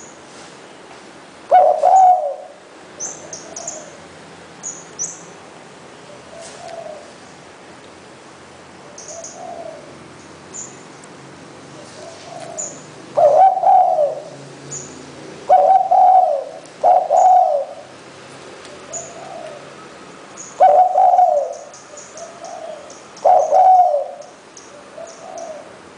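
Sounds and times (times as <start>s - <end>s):
spotted dove cooing: 1.5s - 4.1s, 6.1s - 7.2s, 8.8s - 10.0s, 11.8s - 14.4s, 15.4s - 17.9s, 18.7s - 19.7s, 20.6s - 25.8s.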